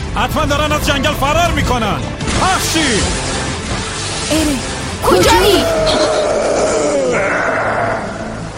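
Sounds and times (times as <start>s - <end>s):
speech: 0.1s - 3.3s, 4.3s - 7.4s
monster screaming: 4.3s - 8.5s.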